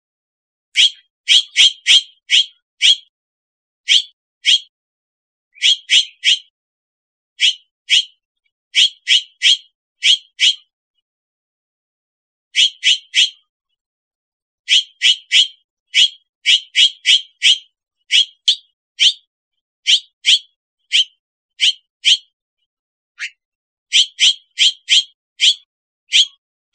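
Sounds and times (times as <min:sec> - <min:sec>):
bird high chip calls: 0:00.7 - 0:03.1, 0:03.8 - 0:04.7, 0:05.6 - 0:06.6, 0:07.4 - 0:10.7, 0:12.5 - 0:13.5, 0:14.7 - 0:19.3, 0:19.9 - 0:22.3, 0:23.2 - 0:26.7.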